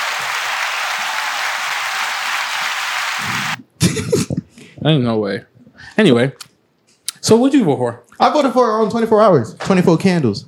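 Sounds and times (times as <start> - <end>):
round of applause: 0.0 - 3.6
speech: 4.8 - 6.5, 7.2 - 10.4.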